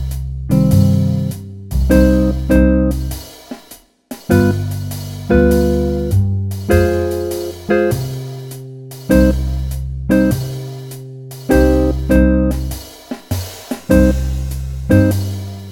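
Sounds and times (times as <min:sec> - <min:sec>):
B-flat tied musical notes: 0:00.5 - 0:03.2, 0:04.3 - 0:10.8, 0:11.5 - 0:12.8, 0:13.9 - 0:15.6.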